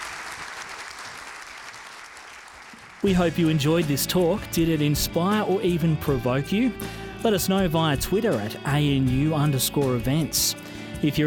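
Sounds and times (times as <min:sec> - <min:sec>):
audience applause thanking a panel at the end of a talk: 0:00.0 - 0:03.2
speech: 0:03.0 - 0:11.2.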